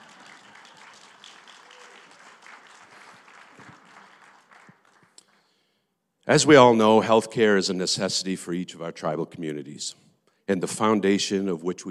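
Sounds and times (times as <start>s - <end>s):
audience applause: 0.0s - 5.3s
speech: 6.3s - 11.8s.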